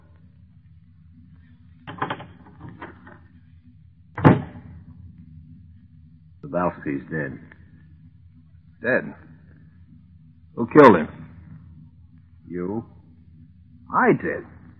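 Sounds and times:
door opening: 0:01.8 - 0:03.2, 0:04.2 - 0:04.8
speech: 0:06.8 - 0:07.6, 0:08.8 - 0:09.3, 0:10.7 - 0:11.2, 0:14.0 - 0:14.5.

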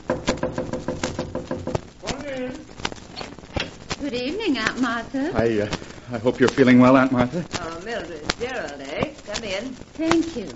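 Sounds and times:
knocking on a door: 0:00.0 - 0:01.9
speech: 0:04.0 - 0:10.5.

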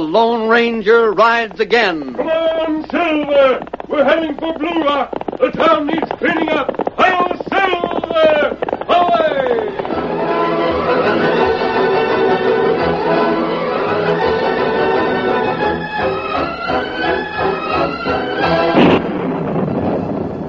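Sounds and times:
speech: 0:00.0 - 0:08.5
sustained tonal backdrop: 0:02.1 - 0:19.8
heavy rolling thunder: 0:18.4 - 0:20.4.

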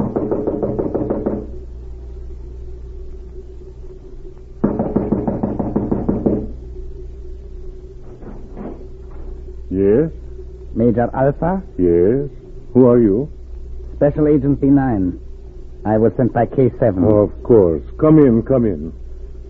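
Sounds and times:
knocking on a cottage door: 0:00.0 - 0:01.6, 0:04.6 - 0:06.6
speech: 0:11.0 - 0:13.4, 0:14.0 - 0:15.2, 0:15.8 - 0:19.0.

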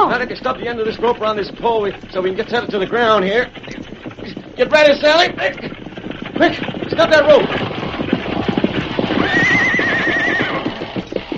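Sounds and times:
horses' hooves clip-clopping: 0:00.0 - 0:11.3
speech: 0:00.2 - 0:03.7, 0:04.6 - 0:05.8, 0:06.4 - 0:07.7
horse neighing: 0:03.6 - 0:11.3.

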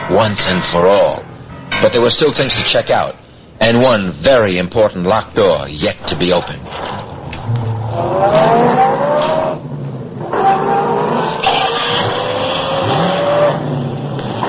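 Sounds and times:
speech: 0:00.1 - 0:01.2, 0:01.8 - 0:08.5
car accelerating hard during chase: 0:07.4 - 0:14.4.

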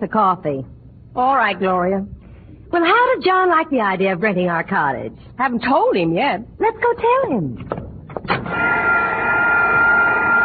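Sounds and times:
speech: 0:00.0 - 0:09.0
vacuum cleaner running: 0:08.4 - 0:10.4.

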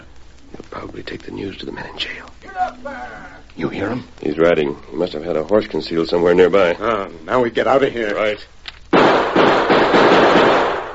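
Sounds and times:
speech: 0:00.8 - 0:08.6
gunshots fired into a wooden barrel: 0:09.0 - 0:10.9.

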